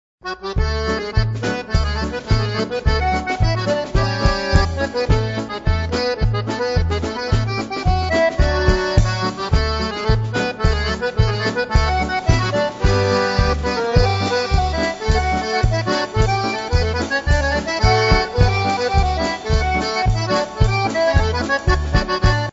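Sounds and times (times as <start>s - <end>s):
concertina: 0.2s - 22.5s.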